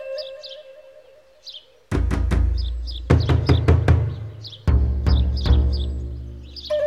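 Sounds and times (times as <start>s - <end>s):
drums: 1.9s - 6.7s.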